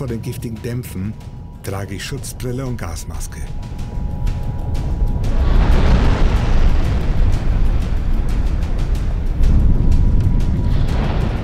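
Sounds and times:
speech: 0.0 - 3.8
volcanic eruptions at a crater rim: 3.9 - 11.4
crackling bursts of volcanic eruptions: 4.0 - 11.4.

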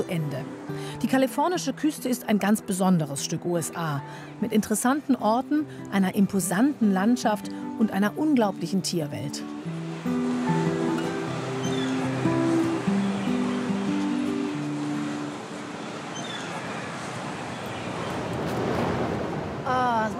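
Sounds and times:
Pacific Ocean waves on the California coast: 0.0 - 20.1
speech: 0.1 - 10.6.

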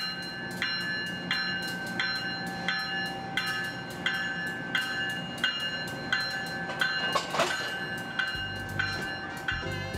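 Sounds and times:
passenger train departing station: 0.0 - 9.9.

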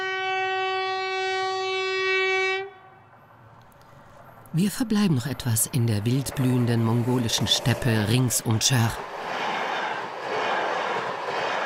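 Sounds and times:
Trans-Mongolian railway train horn: 0.0 - 3.1
low rumble of the Trans-Mongolian railway train: 3.1 - 11.6
speech: 4.5 - 9.4.

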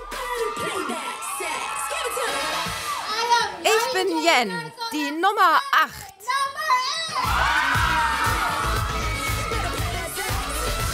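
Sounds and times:
friends cheering: 0.0 - 3.7, 6.7 - 10.9
speech: 4.0 - 6.0.

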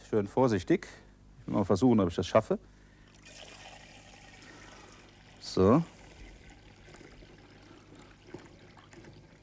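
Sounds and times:
speech: 0.1 - 2.7, 5.5 - 6.0
liquid brew mixture trickling through a funnel into a bottle: 3.0 - 9.4.

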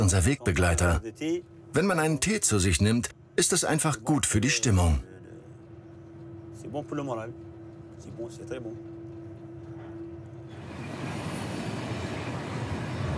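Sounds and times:
voices murmuring: 0.0 - 10.5
speech: 0.1 - 5.1, 6.6 - 9.0
train rolling on rails: 4.4 - 13.1.

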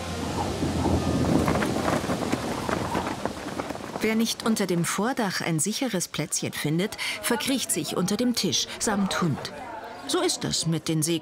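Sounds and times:
heavy rain: 0.0 - 4.8
speech: 4.0 - 11.1.

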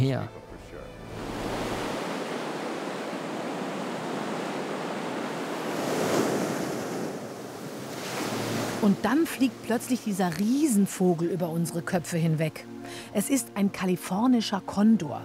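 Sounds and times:
speech: 0.0 - 0.4, 8.8 - 15.2
sea water surging through rocks: 1.1 - 8.9.

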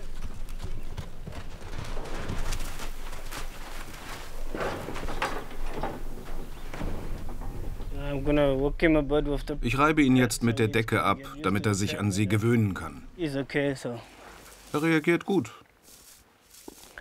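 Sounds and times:
horse hooves clip-clopping: 0.0 - 7.8
speech: 8.2 - 15.6.

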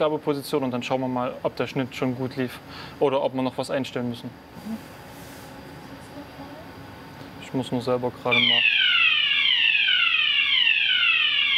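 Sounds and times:
speech: 0.0 - 5.0, 7.5 - 8.8
fire alarm ringing: 8.3 - 11.5.

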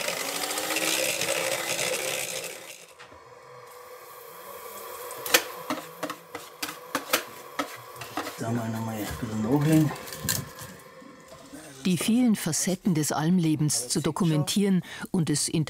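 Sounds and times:
electric mixer whipping egg whites: 0.0 - 12.0
speech: 8.4 - 10.4, 11.8 - 15.6.

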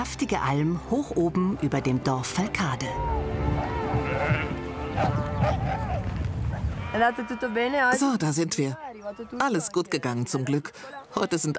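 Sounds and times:
speech: 0.0 - 5.6, 6.9 - 11.5
sheep bleating on alpine pasture: 3.6 - 6.0, 6.8 - 8.0.

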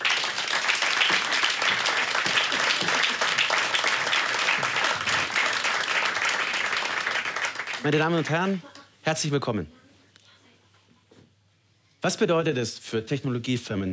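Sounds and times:
audience applause: 0.0 - 8.6
speech: 7.8 - 9.8, 12.0 - 13.9.

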